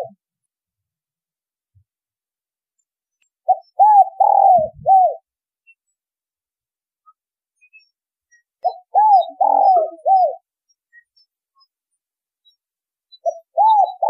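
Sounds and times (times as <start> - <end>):
spotted dove cooing: 3.5 - 5.2, 8.6 - 10.4, 13.2 - 14.0.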